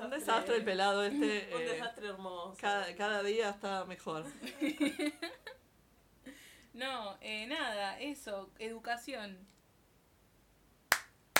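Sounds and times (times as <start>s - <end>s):
speech: 0.2s - 5.5s, 6.8s - 9.6s
laughter: 4.3s - 5.6s
hand claps: 10.9s - 11.3s.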